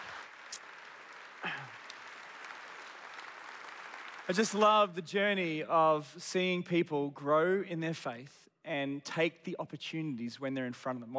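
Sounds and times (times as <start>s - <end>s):
audience applause: 0.0s - 4.6s
speech: 4.3s - 11.1s.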